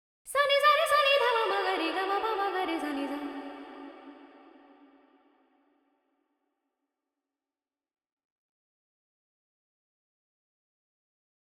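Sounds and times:
female vocals: 0:00.3 - 0:04.9.

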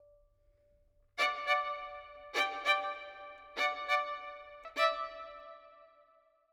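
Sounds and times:
violin with reverb in D minor: 0:01.2 - 0:06.0.

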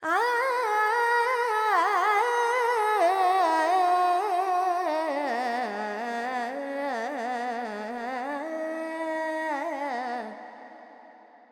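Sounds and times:
Carnatic female vocal alaps in Dorian mode: 0:00.0 - 0:11.5.

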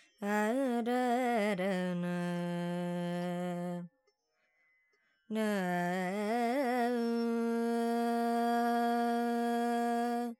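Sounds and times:
Carnatic woman singing alap in Dorian mode: 0:00.2 - 0:03.9, 0:05.3 - 0:10.3.

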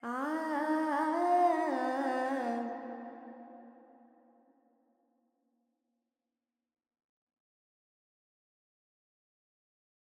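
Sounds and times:
woman singing Carnatic pentatonic alap in G: 0:00.0 - 0:03.1.

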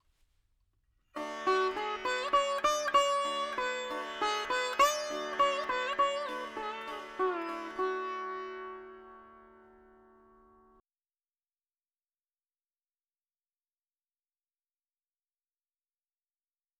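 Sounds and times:
dry veena melody: 0:01.2 - 0:10.8.

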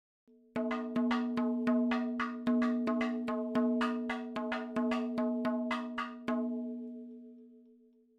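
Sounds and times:
madalam drum fills: 0:00.6 - 0:06.4.

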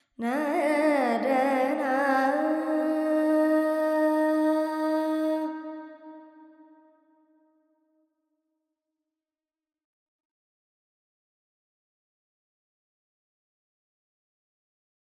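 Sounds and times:
Carnatic female alap in Lydian with reverb: 0:00.2 - 0:05.9.

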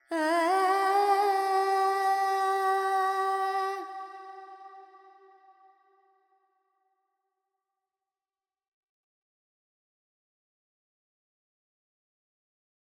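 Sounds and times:
Carnatic female alap in raga Panthuvarali: 0:00.0 - 0:05.2.

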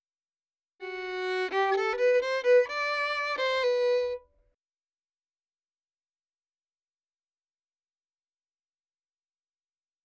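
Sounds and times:
dry violin melody in G major: 0:00.8 - 0:04.3.

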